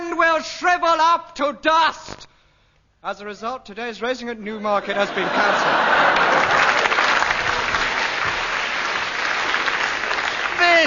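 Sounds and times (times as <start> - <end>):
speech: 0.4 - 2.3, 3.0 - 6.7
laughter: 4.8 - 8.5
round of applause: 5.7 - 10.8.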